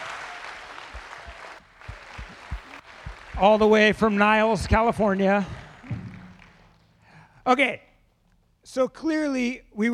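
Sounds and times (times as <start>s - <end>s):
round of applause for actors: 0.0s - 6.8s
speech: 3.4s - 5.6s, 7.5s - 7.9s, 8.7s - 9.9s.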